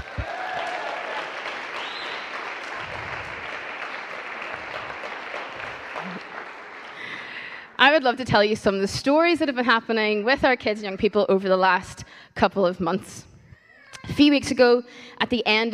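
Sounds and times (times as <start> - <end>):
audience applause: 0.0 - 7.8
speech: 7.8 - 13.3, 14.1 - 15.7.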